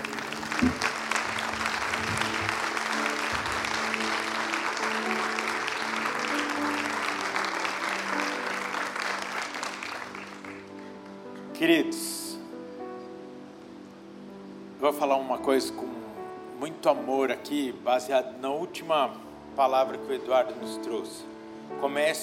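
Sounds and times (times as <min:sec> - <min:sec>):
audience applauding: 0:00.0 - 0:11.2
speech: 0:00.6 - 0:00.9, 0:14.9 - 0:16.0, 0:16.8 - 0:22.2.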